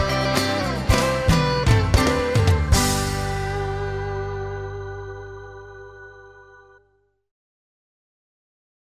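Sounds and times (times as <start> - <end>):
rock music: 0.0 - 6.3.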